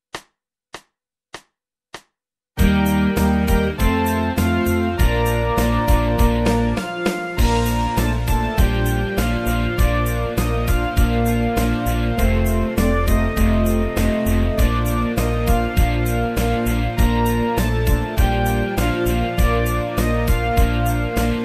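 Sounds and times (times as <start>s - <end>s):
school band music classes playing American folk song: 2.6s - 21.4s.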